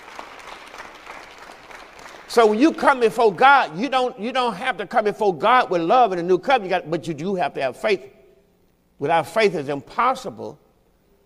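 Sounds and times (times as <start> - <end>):
crowd clapping hands: 0.0 - 3.2
speech: 2.3 - 8.2, 9.0 - 10.6.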